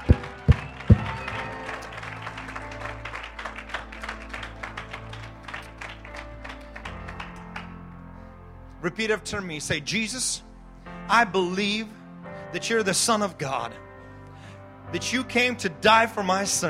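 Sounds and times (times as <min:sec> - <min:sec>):
audience clapping: 0:00.0 - 0:07.8
speech: 0:08.8 - 0:10.5, 0:11.1 - 0:13.9, 0:14.9 - 0:16.6.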